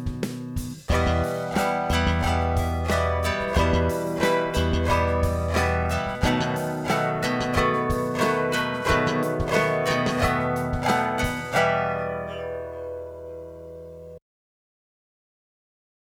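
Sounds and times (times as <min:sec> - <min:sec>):
band playing: 0:00.0 - 0:12.8.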